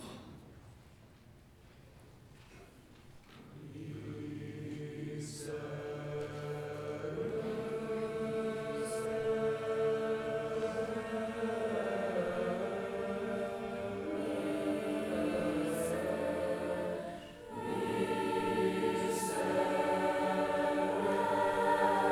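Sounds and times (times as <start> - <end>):
concert choir singing: 3.5 - 22.0.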